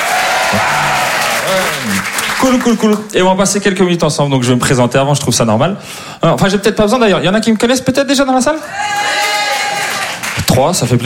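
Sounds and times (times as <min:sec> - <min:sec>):
crowd applause: 0:00.0 - 0:02.9, 0:08.8 - 0:10.6
speech: 0:01.5 - 0:09.2, 0:10.6 - 0:11.0.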